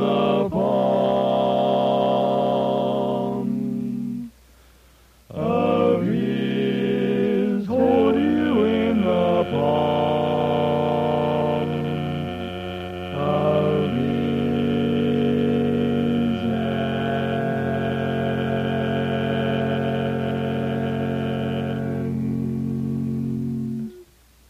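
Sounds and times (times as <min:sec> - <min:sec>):
chorus singing a blessing: 0:00.0 - 0:04.3, 0:05.3 - 0:24.0.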